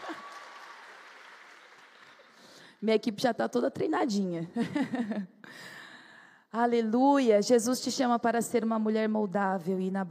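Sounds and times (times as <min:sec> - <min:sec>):
laughter: 0:00.0 - 0:00.6
audience applause: 0:00.0 - 0:02.6
speech: 0:02.8 - 0:05.8, 0:06.5 - 0:10.0.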